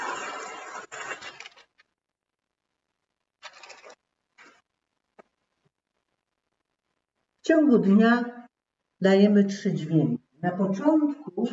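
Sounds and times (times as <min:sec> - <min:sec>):
paper tearing: 0:00.0 - 0:01.9
speech: 0:07.5 - 0:08.4, 0:09.0 - 0:11.5.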